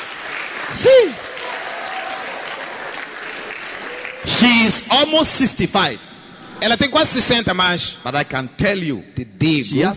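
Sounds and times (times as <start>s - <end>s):
congregation clapping during a bilingual church service: 0.0s - 5.4s
speech: 0.7s - 1.3s, 4.4s - 9.9s.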